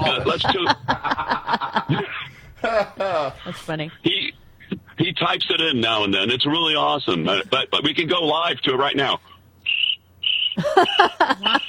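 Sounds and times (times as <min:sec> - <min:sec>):
laughter: 0:00.0 - 0:03.7, 0:10.6 - 0:11.6
speech: 0:00.2 - 0:02.0, 0:03.6 - 0:04.1, 0:05.2 - 0:09.3, 0:10.7 - 0:11.6
crickets chirping: 0:09.6 - 0:11.6.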